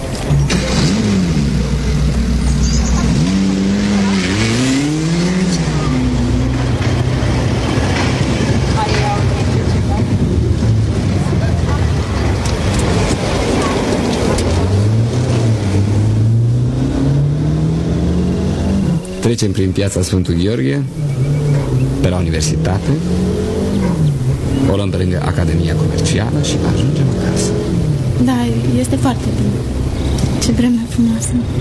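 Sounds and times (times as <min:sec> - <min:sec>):
car engine revving while driving through town: 0:00.0 - 0:31.6
speech: 0:19.3 - 0:21.3, 0:22.0 - 0:23.3, 0:24.7 - 0:27.6, 0:28.2 - 0:29.8, 0:30.4 - 0:31.6.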